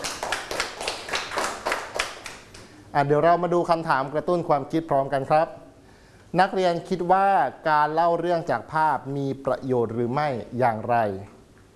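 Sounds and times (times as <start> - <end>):
students clapping for themselves: 0.0 - 2.8
speech: 2.9 - 5.6, 6.3 - 11.3.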